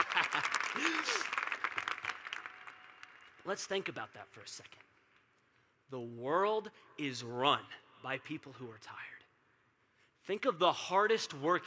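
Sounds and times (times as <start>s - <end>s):
audience applause: 0.0s - 3.1s
speech: 3.4s - 4.8s, 5.9s - 9.2s, 10.3s - 11.6s.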